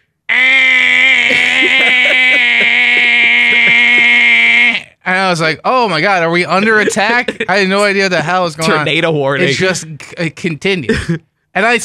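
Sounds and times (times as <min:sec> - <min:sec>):
voice imitating a clothes dryer's end buzzer: 0:00.3 - 0:05.0, 0:08.6 - 0:09.8
laughter: 0:01.1 - 0:04.4, 0:06.5 - 0:08.0, 0:08.6 - 0:10.1
speech: 0:05.1 - 0:11.8.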